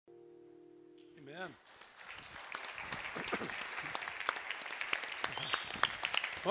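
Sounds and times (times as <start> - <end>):
speech: 1.3 - 1.9
crowd applauding: 1.6 - 6.5.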